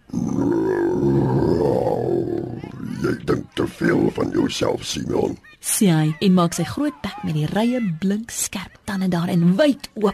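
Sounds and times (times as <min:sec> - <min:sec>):
lion growling deeply: 0:00.0 - 0:03.3
speech: 0:03.8 - 0:10.1.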